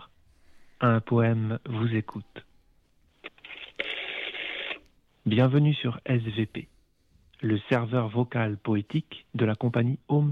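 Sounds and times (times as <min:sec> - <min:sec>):
speech: 0:00.8 - 0:02.5, 0:05.2 - 0:06.7, 0:07.4 - 0:10.3
telephone line noise: 0:03.3 - 0:04.9.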